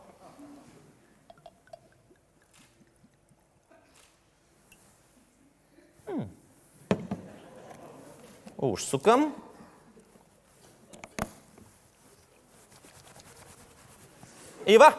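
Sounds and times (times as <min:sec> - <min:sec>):
schnapps poured into an opened shampoo bottle: 0:01.0 - 0:04.1
speech: 0:08.6 - 0:09.4, 0:14.7 - 0:14.9.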